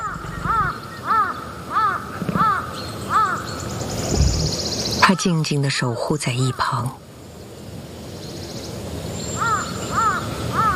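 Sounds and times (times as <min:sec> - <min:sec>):
faint low rumble: 0:00.0 - 0:00.8, 0:03.9 - 0:04.6
crow cawing: 0:00.0 - 0:03.4, 0:09.4 - 0:10.7
speech: 0:05.1 - 0:07.0.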